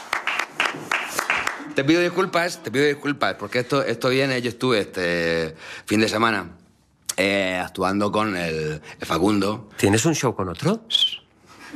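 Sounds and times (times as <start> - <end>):
small group applause at a comedy show: 0.0 - 2.2
speech: 1.8 - 6.6, 7.2 - 11.7.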